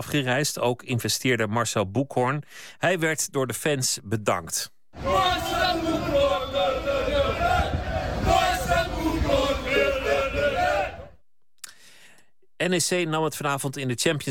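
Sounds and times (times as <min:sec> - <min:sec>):
speech: 0:00.0 - 0:06.0, 0:12.6 - 0:14.2
large displeased Greek football crowd roaring and jeering: 0:05.0 - 0:11.2.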